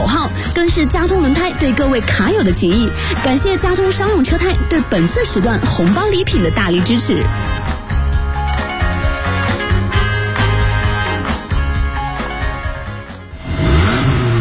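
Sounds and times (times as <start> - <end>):
driving musical beat: 0.0 - 13.4
speech: 0.6 - 7.6
car engine revving and accelerating: 13.3 - 14.4.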